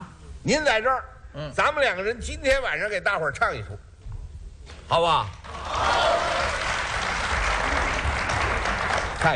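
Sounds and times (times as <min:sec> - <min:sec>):
speech: 0:00.4 - 0:03.9, 0:04.9 - 0:06.0
audience applause: 0:05.5 - 0:09.3.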